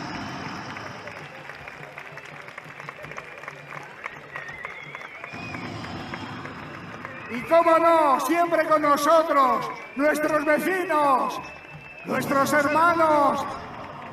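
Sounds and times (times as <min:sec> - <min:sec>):
crowd murmur and voices: 0:00.0 - 0:07.6
large audience applause: 0:00.0 - 0:14.1
speech: 0:07.3 - 0:13.5.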